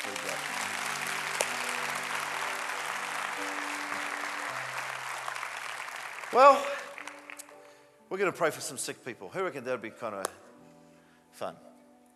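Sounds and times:
church audience clapping: 0.0 - 7.8
speech: 6.3 - 6.8, 8.1 - 10.4, 11.4 - 11.7.

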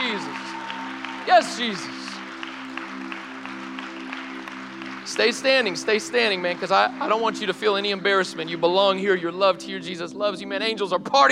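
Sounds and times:
audience applauding: 0.0 - 9.0
speech: 1.3 - 2.0, 5.1 - 11.2.

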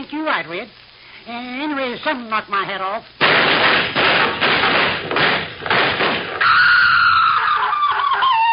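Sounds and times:
speech: 0.2 - 4.4
gunshots: 3.2 - 6.6
high wavering cry: 6.4 - 8.5.

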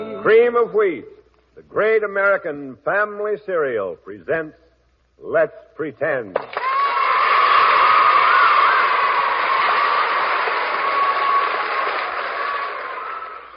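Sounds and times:
speech: 0.2 - 4.6, 5.2 - 6.6
studio audience applause: 6.4 - 13.5.

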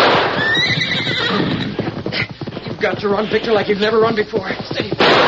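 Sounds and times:
cayuse horse whinnying: 0.1 - 3.5
speech: 2.8 - 5.2.

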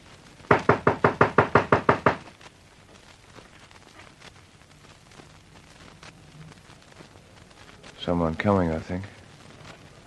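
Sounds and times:
loud knocks on a front door: 0.5 - 2.3
speech: 8.1 - 9.2.

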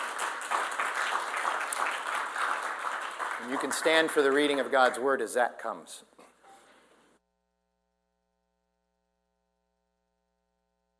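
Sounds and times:
audience clapping: 0.0 - 5.6
speech: 3.4 - 6.2.

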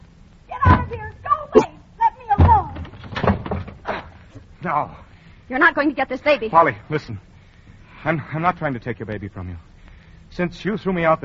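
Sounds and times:
door being broken down: 0.6 - 1.0, 2.4 - 4.2
speech: 4.6 - 7.3, 8.0 - 9.7, 10.3 - 11.2.

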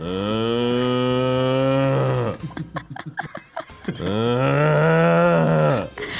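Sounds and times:
bull mooing: 0.0 - 2.4, 4.1 - 5.9
laughter: 2.3 - 4.4.

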